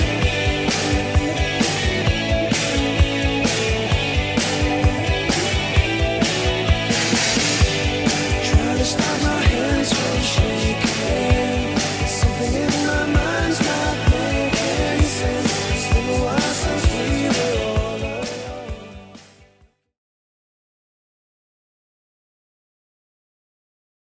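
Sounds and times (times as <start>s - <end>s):
80s style beat: 0.0s - 19.2s.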